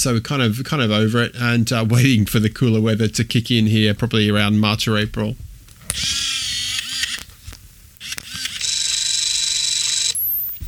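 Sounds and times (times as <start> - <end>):
speech: 0.0 - 6.2
point-and-shoot film camera motor whirring: 5.8 - 10.6
point-and-shoot film camera shutter click: 5.9 - 7.3, 8.0 - 10.6.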